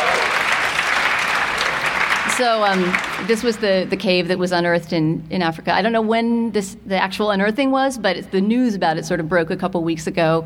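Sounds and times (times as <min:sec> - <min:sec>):
audience clapping: 0:00.0 - 0:04.3
speech: 0:02.4 - 0:10.4.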